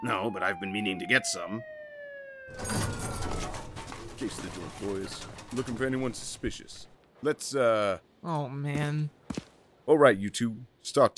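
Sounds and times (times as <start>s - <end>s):
speech: 0.0s - 1.8s, 2.5s - 11.1s
police siren wailing: 0.0s - 3.9s.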